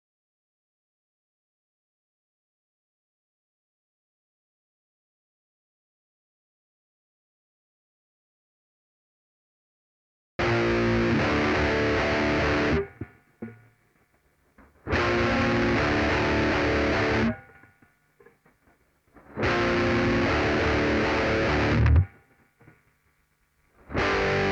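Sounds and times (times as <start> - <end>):
saturated guitar: 10.4 - 22.8, 23.7 - 24.5.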